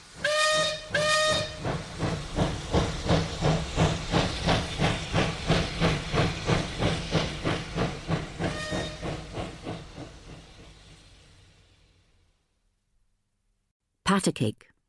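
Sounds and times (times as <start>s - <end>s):
steam train hissing: 0.0s - 12.5s
steam train whistling: 0.1s - 1.8s, 8.4s - 9.3s
speech: 14.1s - 14.7s.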